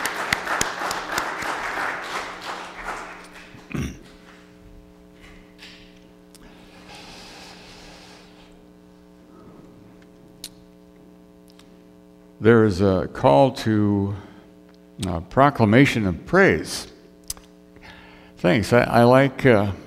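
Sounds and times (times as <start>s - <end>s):
applause: 0.0s - 3.7s
speech: 12.4s - 14.3s, 15.0s - 16.9s, 18.4s - 19.8s.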